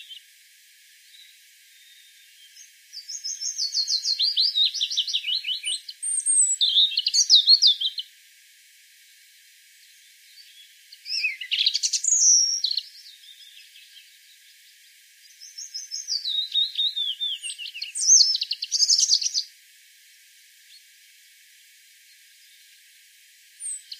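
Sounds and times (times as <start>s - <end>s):
European robin singing: 0.0s - 0.3s, 1.0s - 8.1s, 9.8s - 19.5s, 23.6s - 23.9s.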